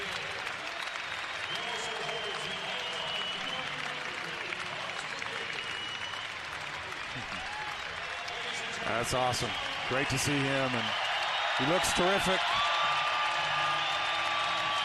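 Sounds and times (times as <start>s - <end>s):
large arena crowd clapping and cheering in a standing ovation: 0.0s - 14.8s
scattered whistles and shouts from the crowd: 0.8s - 3.9s, 5.5s - 6.4s, 9.2s - 14.8s
speech: 9.0s - 11.0s, 11.6s - 12.6s.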